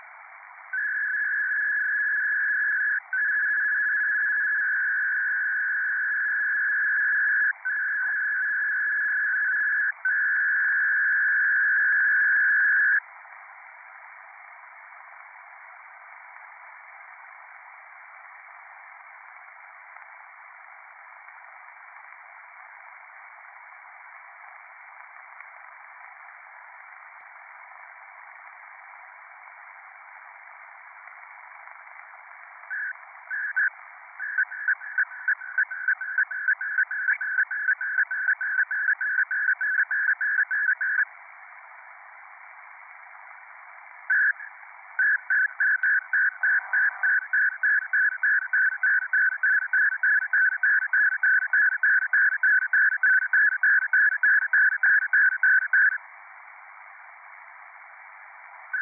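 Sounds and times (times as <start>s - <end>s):
CHP-200 SELCALL ARQ radio data signal: 0.0s - 13.1s, 22.9s - 41.5s, 42.3s - 56.0s, 57.3s - 58.8s.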